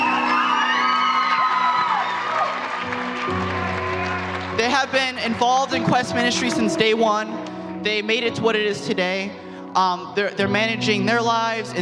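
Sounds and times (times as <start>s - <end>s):
crowd clapping and cheering: 0.0s - 7.0s
speech: 4.7s - 11.7s.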